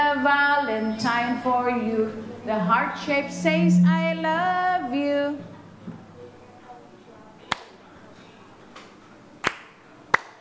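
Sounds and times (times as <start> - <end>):
speech: 0.2 - 5.5
sharp hand claps: 8.8 - 10.3.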